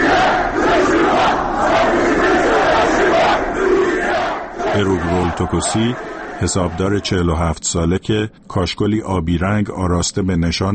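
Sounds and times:
protesters chanting slogans: 0.0s - 7.2s
speech: 4.8s - 10.7s.

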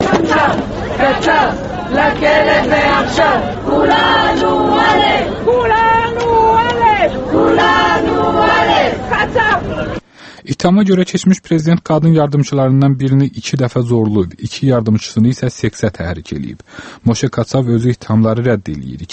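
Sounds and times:
women's rights activists outside a court building shouting and chanting: 0.0s - 10.0s
speech: 0.4s - 6.4s, 7.0s - 19.1s.

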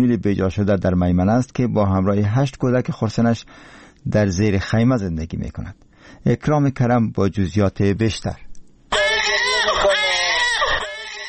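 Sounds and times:
speech: 0.0s - 8.4s
newborn baby crying: 8.9s - 11.2s.

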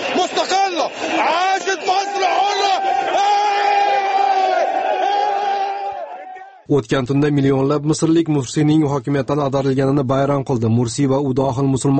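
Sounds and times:
crowd cheering and chanting in Tahrir Square Cairo: 0.0s - 6.7s
speech: 6.7s - 11.9s.

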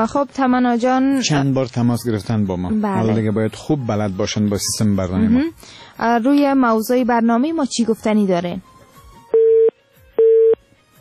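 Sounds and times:
speech: 0.0s - 8.7s
telephone busy signal after a dropped call: 9.4s - 10.6s.

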